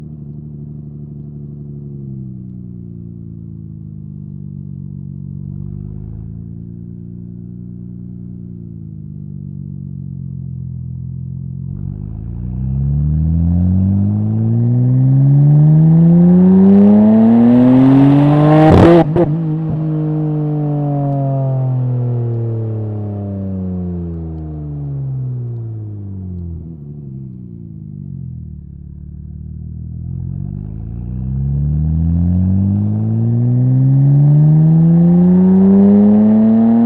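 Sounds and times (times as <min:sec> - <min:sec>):
1997 Nissan R33 Skyline exhaust driving on ramps, onboard: 0:10.0 - 0:36.8.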